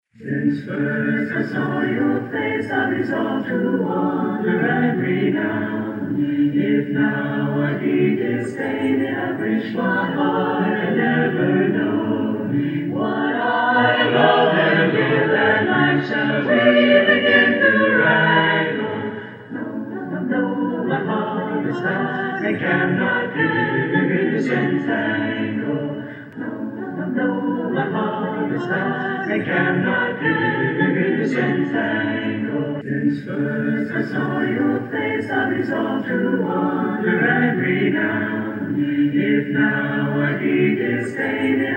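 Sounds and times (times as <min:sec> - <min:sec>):
chorale: 0:00.1 - 0:41.7.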